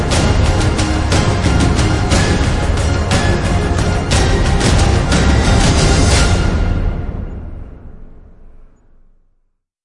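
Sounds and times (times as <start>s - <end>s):
percussion: 0.0s - 7.7s.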